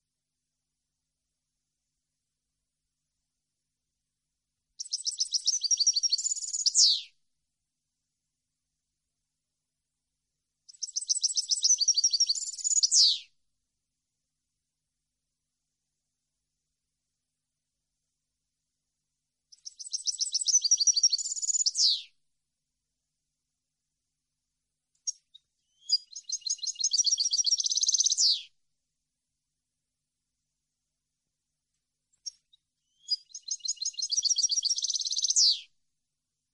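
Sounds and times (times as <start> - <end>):
European goldfinch singing: 4.8 - 7.0, 10.7 - 13.2, 19.6 - 22.1, 25.1 - 28.4, 32.3 - 35.6.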